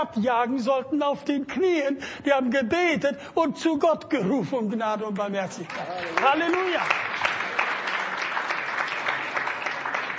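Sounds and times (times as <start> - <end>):
speech: 0.0 - 7.4
audience clapping: 5.1 - 10.1.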